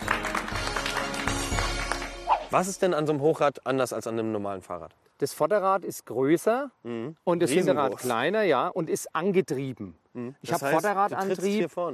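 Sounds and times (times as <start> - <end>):
audience applause: 0.0 - 2.3
speech: 2.5 - 11.9.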